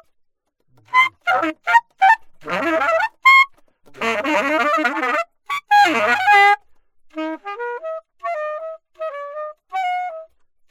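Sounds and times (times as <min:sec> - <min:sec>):
alto saxophone: 0:00.8 - 0:10.3.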